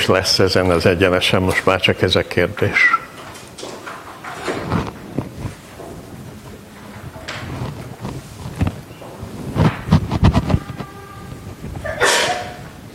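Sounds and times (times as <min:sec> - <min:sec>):
speech: 0:00.0 - 0:03.0
rustling, shuffling noise: 0:00.0 - 0:12.9
short scratchy thumps: 0:03.2 - 0:12.8
person sneezing: 0:11.9 - 0:12.6.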